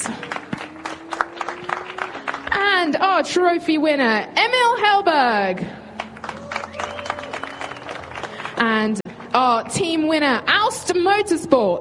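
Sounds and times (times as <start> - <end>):
audience applause at a motorsport podium ceremony: 0.0 - 2.6, 5.9 - 9.3
speech: 2.9 - 5.8, 8.6 - 11.8.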